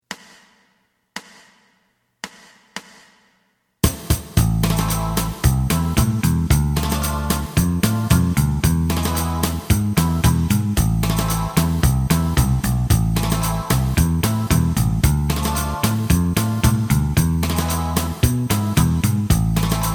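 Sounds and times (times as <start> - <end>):
lead melody: 4.4 - 19.9.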